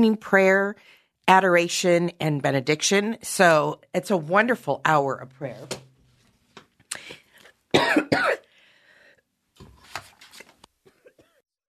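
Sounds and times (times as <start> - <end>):
speech: 0.0 - 5.8, 6.9 - 8.4
person coughing: 7.7 - 8.5.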